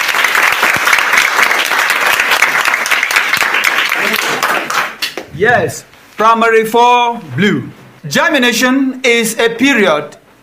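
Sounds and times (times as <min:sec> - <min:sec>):
audience applause: 0:00.0 - 0:05.2
speech: 0:05.4 - 0:10.2.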